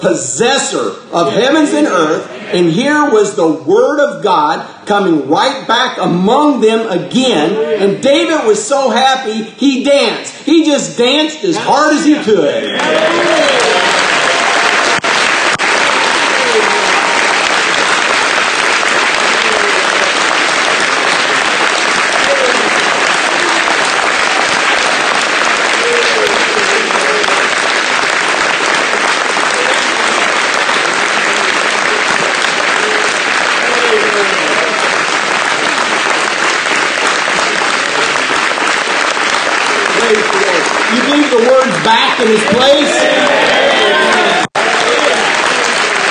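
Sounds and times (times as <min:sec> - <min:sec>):
speech: 0:00.0 - 0:13.7
audience clapping: 0:11.1 - 0:46.0.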